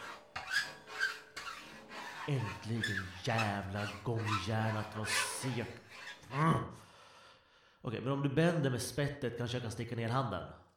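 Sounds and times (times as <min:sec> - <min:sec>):
hand file rasping during a bank break-in: 0:00.0 - 0:06.6
speech: 0:02.3 - 0:06.8, 0:07.8 - 0:10.6.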